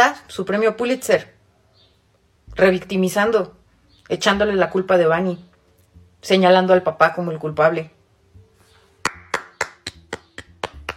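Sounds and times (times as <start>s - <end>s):
speech: 0.0s - 1.4s, 2.6s - 5.5s, 6.2s - 8.0s
clapping: 9.0s - 10.9s.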